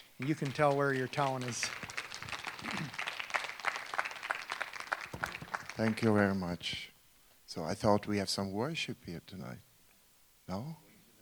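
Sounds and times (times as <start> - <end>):
audience applause welcoming a speaker at an evening church gathering: 0.0 - 6.8
speech: 0.2 - 1.9, 5.8 - 6.9, 7.5 - 9.7, 10.5 - 10.8.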